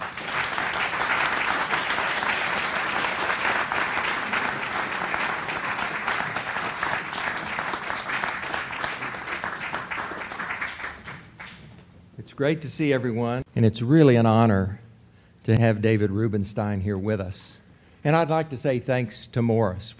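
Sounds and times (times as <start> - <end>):
audience applause welcoming speakers onto the stage: 0.0 - 11.8
speech: 12.4 - 14.8, 15.4 - 19.9.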